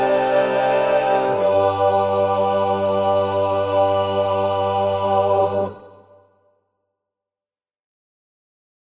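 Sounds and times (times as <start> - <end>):
barbershop lead voice singing: 0.0 - 5.8.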